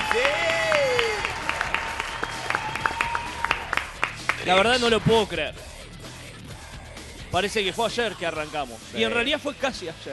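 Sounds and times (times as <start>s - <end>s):
applause: 0.0s - 4.7s
speech: 4.4s - 5.7s, 7.3s - 10.1s.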